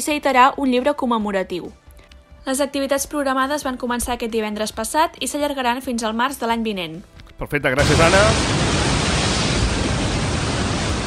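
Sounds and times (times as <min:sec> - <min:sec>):
speech: 0:00.0 - 0:01.8, 0:02.4 - 0:08.6
sea waves: 0:07.8 - 0:11.0.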